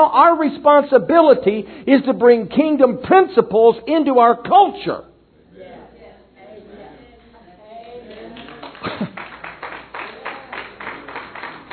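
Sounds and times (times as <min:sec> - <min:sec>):
speech: 0:00.0 - 0:05.1
audience clapping: 0:07.7 - 0:11.7.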